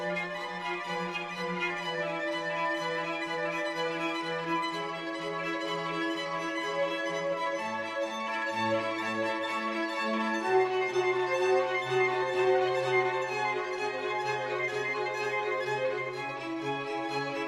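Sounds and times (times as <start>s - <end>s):
cello: 0.0s - 17.4s
four violins: 0.0s - 17.4s
string ensemble with basso continuo: 0.0s - 17.4s.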